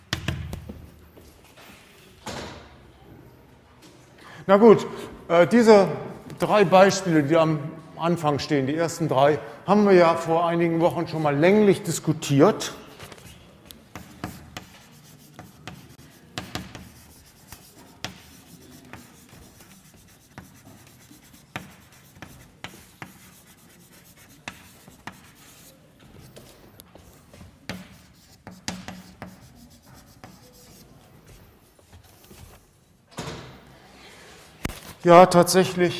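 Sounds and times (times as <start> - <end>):
speech: 4.5 - 12.8, 35.1 - 35.9
writing on a board during a maths lecture: 13.9 - 31.9.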